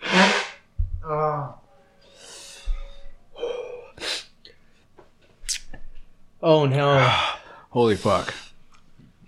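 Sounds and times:
person blowing nose: 0:00.0 - 0:00.7, 0:04.0 - 0:04.4
speech: 0:06.4 - 0:08.4.

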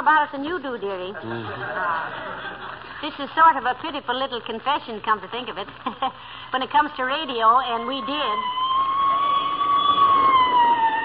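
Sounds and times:
speech: 0:00.0 - 0:08.6
laughter: 0:01.2 - 0:03.0
police squad car siren passing: 0:07.8 - 0:11.0.

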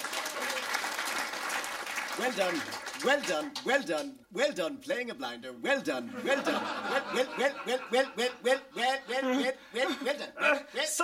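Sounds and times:
audience applause: 0:00.0 - 0:03.6
speech: 0:02.2 - 0:11.0
laughter: 0:06.1 - 0:10.6.

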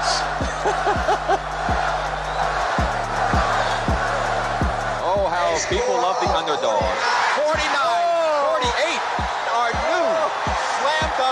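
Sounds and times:
laughter: 0:00.0 - 0:02.2
arena crowd chanting a player's name: 0:00.0 - 0:11.3.

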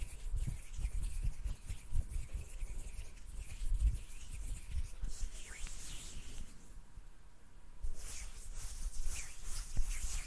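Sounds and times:
hands rubbing, brushing and tapping: 0:00.0 - 0:06.7, 0:07.9 - 0:10.2
bright hissy swishes: 0:01.9 - 0:06.8, 0:07.9 - 0:10.2.

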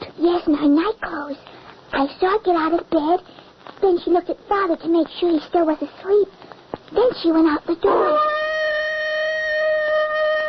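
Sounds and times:
speech: 0:00.4 - 0:08.3
wolf howling: 0:07.9 - 0:10.4.

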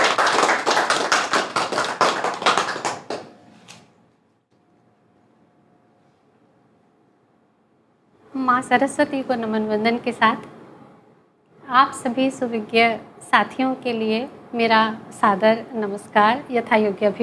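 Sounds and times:
audience applause welcoming a speaker: 0:00.0 - 0:03.4
speech: 0:08.6 - 0:10.6, 0:11.7 - 0:17.2.

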